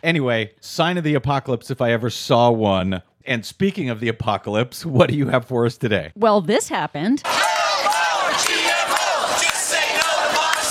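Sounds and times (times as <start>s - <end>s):
speech: 0.0s - 7.4s
protest crowd shouting chants: 7.2s - 10.6s.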